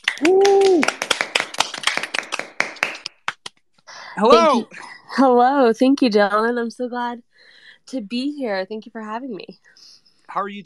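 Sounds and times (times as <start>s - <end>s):
hands clapping in applause: 0.0s - 3.6s
speech: 0.2s - 0.5s, 4.2s - 10.6s.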